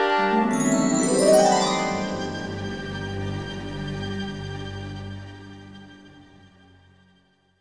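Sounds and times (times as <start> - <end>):
intro music flourish: 0.2 - 4.4.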